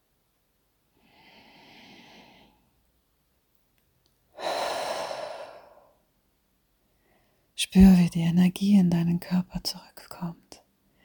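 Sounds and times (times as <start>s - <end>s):
person breathing deeply during a guided relaxation: 1.0s - 2.7s, 4.4s - 6.0s
speech: 7.6s - 10.5s.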